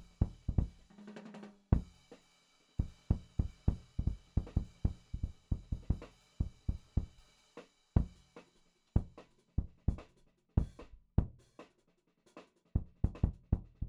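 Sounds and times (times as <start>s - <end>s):
punchy kick drum in drum and bass jazz jungle beats: 0.0s - 0.8s, 1.8s - 2.0s, 2.8s - 7.2s, 8.0s - 8.2s, 9.0s - 10.0s, 10.6s - 11.4s, 12.8s - 13.8s
drum and bass jazz jungle beat: 0.0s - 13.8s.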